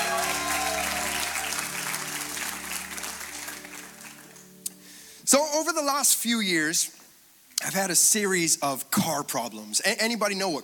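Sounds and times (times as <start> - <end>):
audience clapping and cheering: 0.0 - 4.8
speech: 5.3 - 7.0, 7.6 - 10.6.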